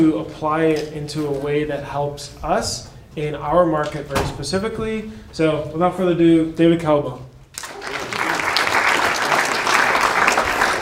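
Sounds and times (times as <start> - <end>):
speech: 0.0 - 7.3
audience applause: 7.6 - 10.8.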